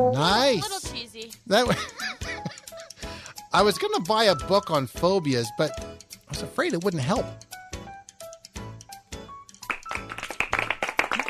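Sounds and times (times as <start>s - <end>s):
speech: 0.0s - 2.3s, 3.5s - 7.4s
laughter: 0.3s - 3.0s
polite golf clap: 9.6s - 11.2s.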